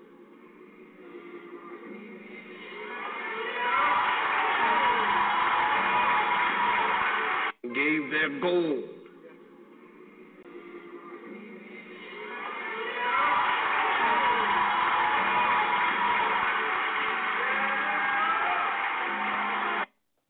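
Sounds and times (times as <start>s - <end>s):
church crowd cheering and shouting: 2.6s - 7.5s, 12.0s - 19.9s
speech: 8.2s - 9.0s.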